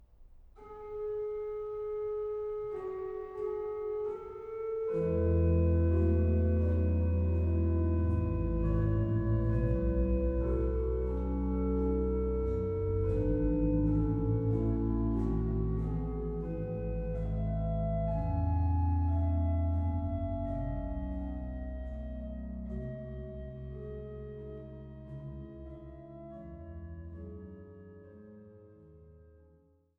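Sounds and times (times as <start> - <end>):
andante con moto intermezzo sonata movement: 0.6 - 28.6.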